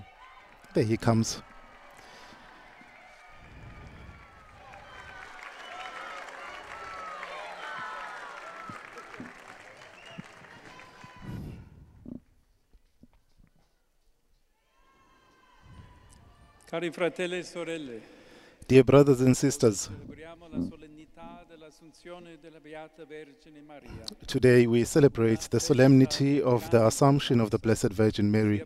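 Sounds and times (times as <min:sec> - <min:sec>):
large enthusiastic crowd applauding and cheering: 0:00.0 - 0:11.7
speech: 0:00.7 - 0:01.5, 0:16.8 - 0:20.9, 0:21.6 - 0:28.6.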